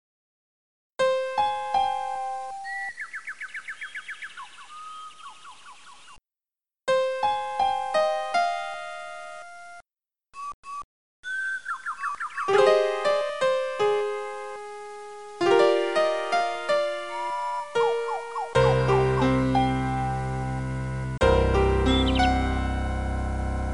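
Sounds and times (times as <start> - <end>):
music: 1.0 - 2.7, 6.9 - 9.9, 12.5 - 23.7.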